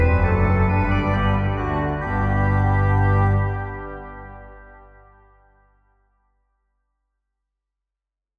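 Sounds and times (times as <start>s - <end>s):
Organteq organ minuet: 0.0s - 5.6s.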